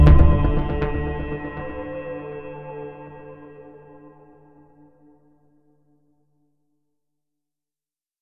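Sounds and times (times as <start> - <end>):
documentary promo: 0.0 - 3.3.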